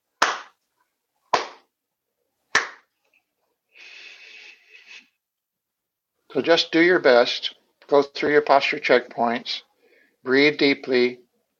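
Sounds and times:
hands clapping to start meditation timer: 0.2 - 0.6, 1.3 - 1.7, 2.5 - 2.9
speech: 6.3 - 11.2.

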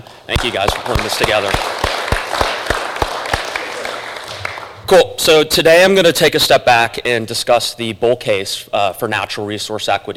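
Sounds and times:
speech: 0.3 - 2.0, 4.9 - 10.1
audience applause for conference organizers: 0.3 - 4.8
sharp evenly spaced hand claps: 0.3 - 4.9.

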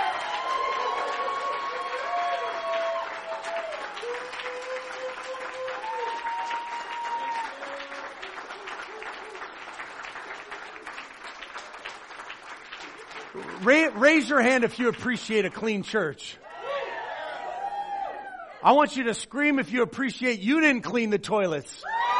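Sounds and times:
scattered cheers: 0.0 - 9.7, 16.4 - 18.6, 21.8 - 22.1
church audience applauding: 0.0 - 15.6
speech: 13.6 - 16.4, 18.6 - 21.9.

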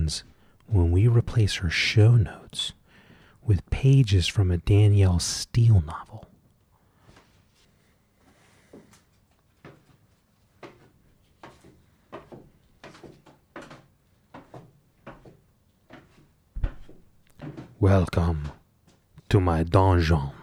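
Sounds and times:
speech: 0.1 - 2.8, 3.4 - 6.3, 17.8 - 18.6, 19.3 - 20.4
wooden wardrobe door bumps and rattles: 16.6 - 17.6.

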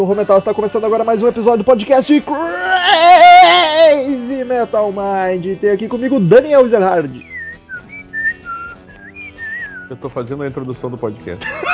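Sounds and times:
speech: 0.0 - 7.3, 9.9 - 11.7
person whistling a lively bird-like tune: 7.2 - 10.0
laughter: 11.4 - 11.7.

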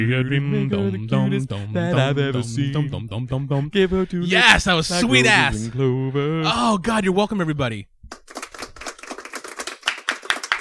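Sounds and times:
speech: 0.0 - 8.2
small group applauding: 8.1 - 10.6.

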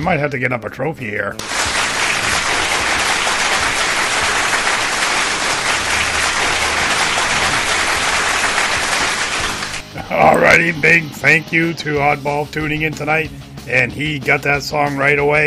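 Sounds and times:
speech: 0.0 - 2.0, 10.2 - 15.4
audience applause: 1.4 - 9.9.

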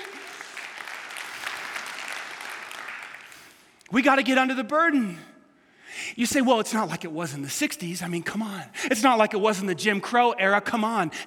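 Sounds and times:
crowd applause: 0.0 - 3.7
speech: 3.9 - 5.3, 6.1 - 11.2.

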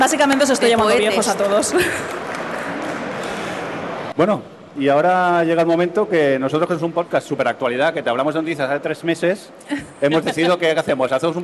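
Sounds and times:
speech: 0.0 - 2.3, 4.2 - 11.4
live audience applause: 1.8 - 3.7
laughter: 9.7 - 10.6.

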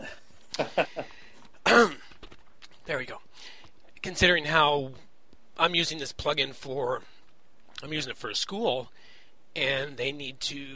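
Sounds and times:
speech: 0.6 - 1.0, 4.2 - 5.0, 5.6 - 7.1, 7.8 - 10.7
person coughing after swallowing the wrong way: 1.6 - 2.1.

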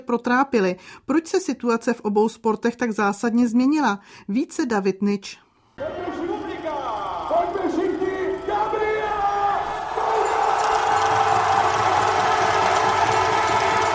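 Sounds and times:
speech: 0.0 - 6.2
large crowd cheering at a biathlon race: 5.8 - 13.9.

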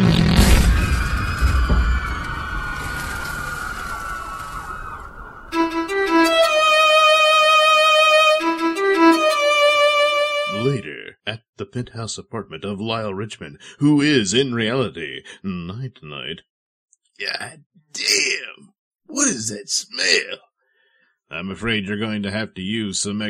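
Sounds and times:
loud explosion: 0.0 - 4.6
wailing siren: 0.8 - 10.8
speech: 11.7 - 16.5, 17.2 - 20.5, 21.3 - 23.2.

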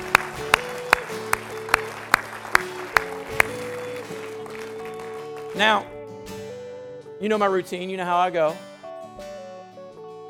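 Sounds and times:
hand clapping: 0.0 - 5.9
speech: 5.6 - 6.0, 7.2 - 8.7.

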